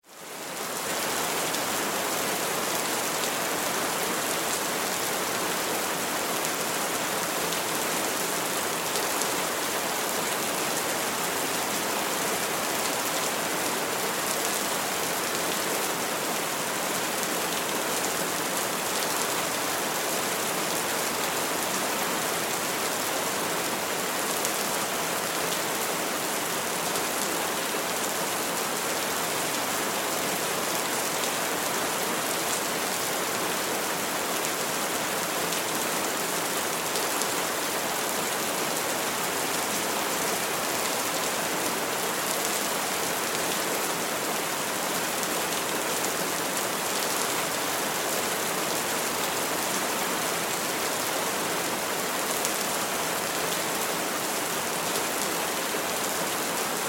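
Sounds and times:
rain downpour: 0.0 - 56.8.

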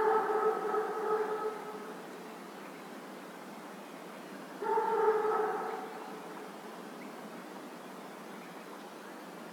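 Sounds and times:
dog barking at a lake near a village in the evening: 0.0 - 1.8, 4.6 - 5.9.

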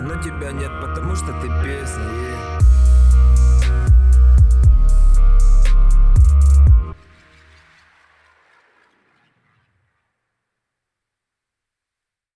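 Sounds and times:
low frequency tone: 2.6 - 7.0.

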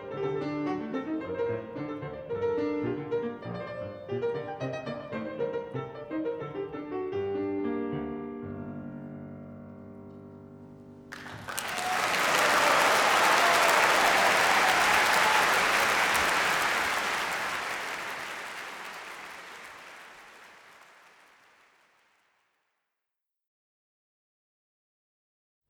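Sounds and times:
piano: 0.0 - 20.1.

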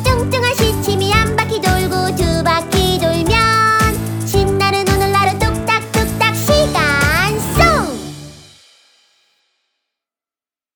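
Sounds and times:
children's melody: 0.0 - 8.6.

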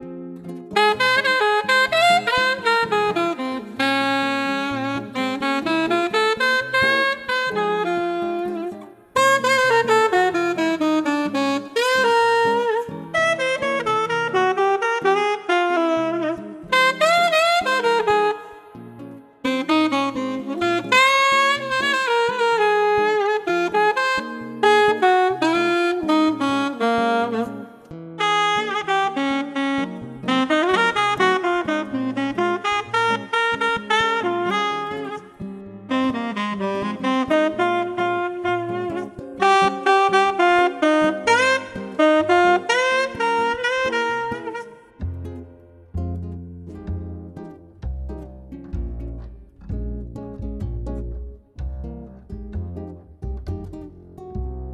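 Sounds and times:
classical jazz music: 0.0 - 54.7.

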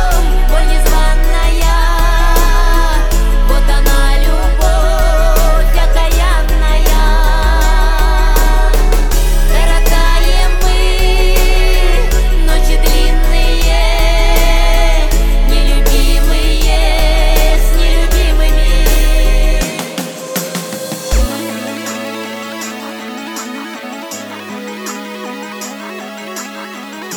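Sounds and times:
33-37 Hz low bass tone: 0.0 - 19.6.

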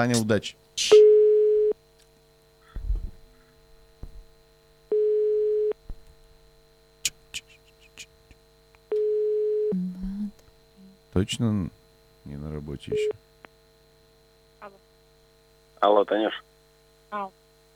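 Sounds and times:
speech: 0.0 - 1.0, 11.2 - 13.3, 15.8 - 16.5, 17.1 - 17.4
telephone busy signal beeps: 1.0 - 1.8, 4.9 - 5.8, 8.9 - 9.8.

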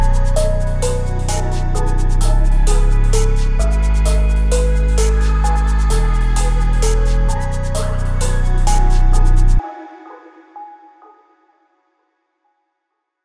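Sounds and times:
glitchcore type beat: 0.0 - 9.6.

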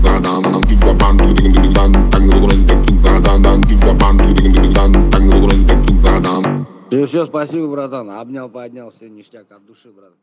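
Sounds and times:
low bass tone at 41 to 46 Hz: 0.0 - 6.6.

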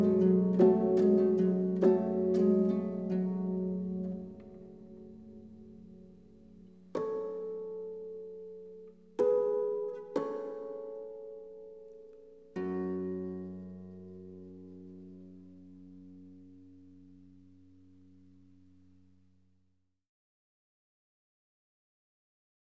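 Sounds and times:
harp ensemble: 0.0 - 17.4.

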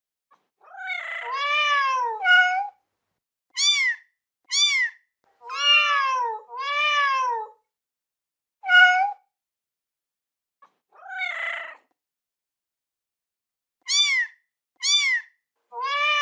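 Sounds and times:
kitten meowing: 0.7 - 2.7, 3.6 - 7.5, 8.6 - 9.2, 13.9 - 16.2.

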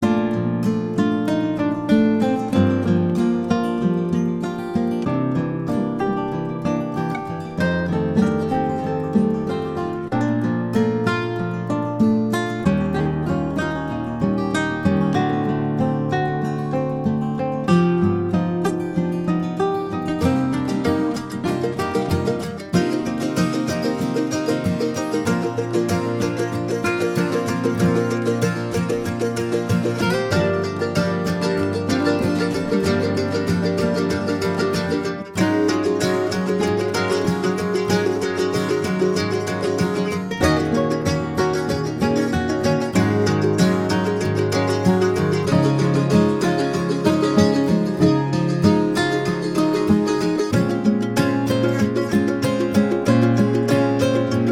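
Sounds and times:
music for cats: 0.0 - 54.5.

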